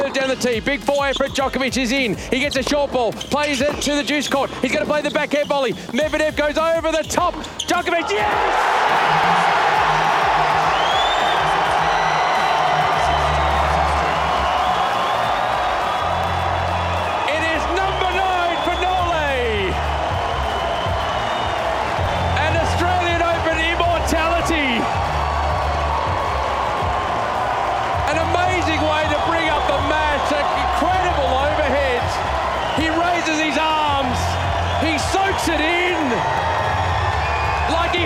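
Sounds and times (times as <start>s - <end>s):
speech: 0.3s - 9.8s
tennis crowd cheering and applauding: 7.8s - 38.0s.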